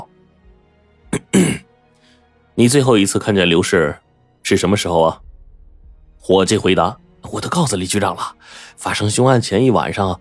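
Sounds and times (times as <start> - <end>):
person clearing throat: 1.2 - 1.6
speech: 1.4 - 1.7, 2.6 - 5.3, 6.2 - 10.2.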